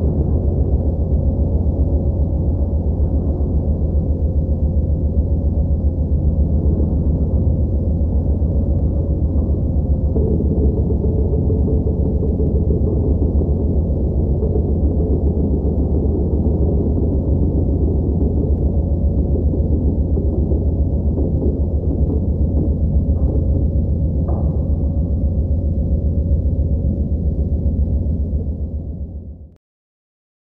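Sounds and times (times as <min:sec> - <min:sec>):
sub bass ambient drone: 0:00.0 - 0:29.6.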